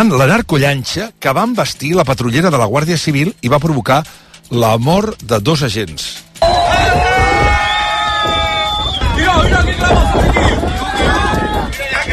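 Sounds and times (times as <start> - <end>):
speech: 0.0 - 7.1
people shouting from a port: 6.4 - 12.1
wind-buffeted rumbling background: 6.4 - 12.1.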